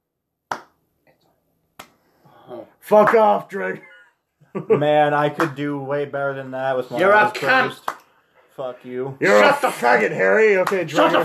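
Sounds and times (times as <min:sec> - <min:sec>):
slow sarcastic hand claps: 0:00.5 - 0:00.8, 0:01.8 - 0:02.0, 0:03.0 - 0:03.4, 0:05.4 - 0:05.6, 0:07.4 - 0:08.2, 0:10.6 - 0:11.0
speech: 0:02.5 - 0:03.9, 0:04.5 - 0:07.9, 0:08.6 - 0:11.2.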